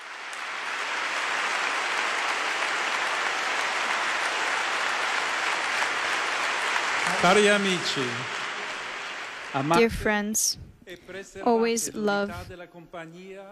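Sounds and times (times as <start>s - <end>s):
crowd applause: 0.0s - 9.9s
speech: 7.2s - 8.4s, 9.5s - 13.5s.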